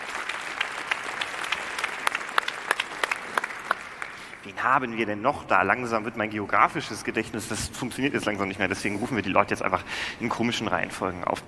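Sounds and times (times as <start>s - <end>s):
audience applause: 0.0s - 4.4s
speech: 4.5s - 11.4s.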